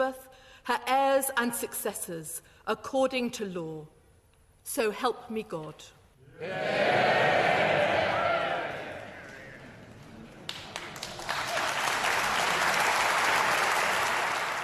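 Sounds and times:
speech: 0.1s - 4.0s, 4.6s - 7.9s
members of the House of Lords cheering: 6.3s - 14.6s
members of the House of Lords clapping: 8.1s - 14.6s.

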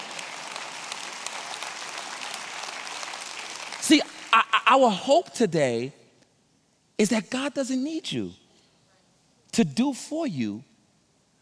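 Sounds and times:
audience clapping: 0.0s - 4.6s
speech: 3.9s - 6.0s, 7.0s - 8.4s, 9.5s - 10.7s.

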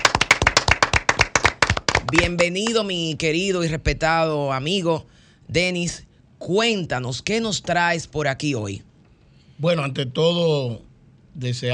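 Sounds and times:
audience applause: 0.0s - 2.4s
speech: 2.1s - 8.9s, 9.6s - 11.7s.

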